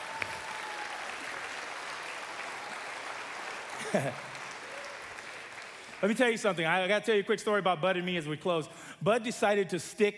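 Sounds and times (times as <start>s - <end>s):
audience round of applause: 0.0s - 6.4s
speech: 3.9s - 4.3s, 6.0s - 10.1s.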